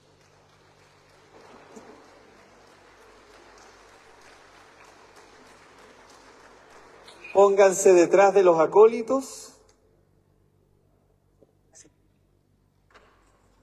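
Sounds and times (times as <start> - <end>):
audience applause: 0.0 - 8.4
speech: 7.4 - 9.5.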